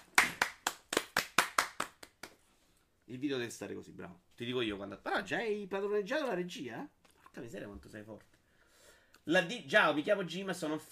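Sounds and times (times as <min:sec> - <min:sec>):
hand claps: 0:00.0 - 0:02.4
speech: 0:03.1 - 0:08.4, 0:09.2 - 0:10.8.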